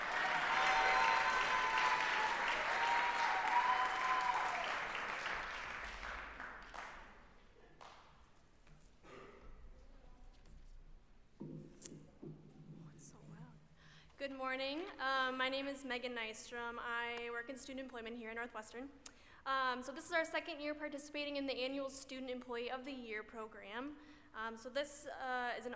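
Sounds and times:
audience clapping: 0.0s - 8.3s
speech: 14.2s - 25.7s.

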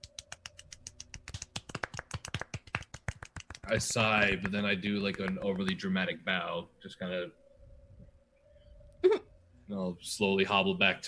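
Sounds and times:
crowd soft golf clap: 0.1s - 5.9s
speech: 3.7s - 7.4s, 9.7s - 11.0s.

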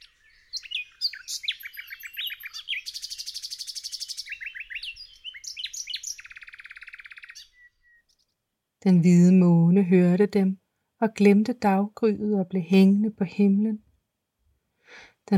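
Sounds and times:
nightingale singing: 0.0s - 8.4s
speech: 8.8s - 13.9s.

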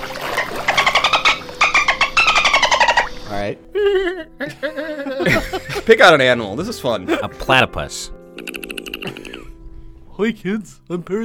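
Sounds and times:
dolphin vocalizing: 0.0s - 3.3s, 8.2s - 9.3s
speech: 3.4s - 8.2s, 10.2s - 11.2s
laughter: 3.7s - 6.3s, 8.4s - 9.6s.

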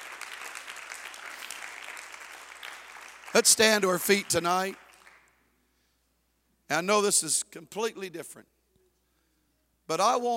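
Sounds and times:
audience clapping hands: 0.0s - 5.4s
speech: 3.3s - 4.8s, 6.7s - 8.5s, 9.9s - 10.3s.

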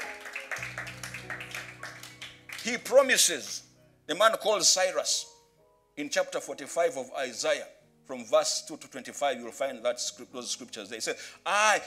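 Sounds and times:
congregation clapping as a clap offering during a church service: 0.0s - 3.6s
speech: 2.6s - 5.3s, 6.0s - 11.8s.

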